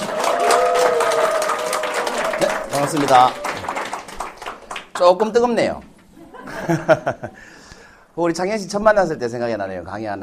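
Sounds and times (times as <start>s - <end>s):
audience applause: 0.0s - 5.0s
speech: 2.9s - 3.4s, 5.0s - 5.9s, 6.5s - 7.6s, 8.2s - 10.2s
laughter: 6.1s - 7.5s.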